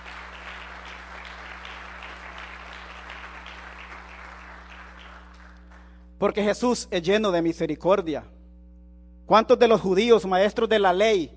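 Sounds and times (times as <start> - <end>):
audience applause: 0.0 - 5.9
speech: 6.2 - 8.3, 9.3 - 11.3.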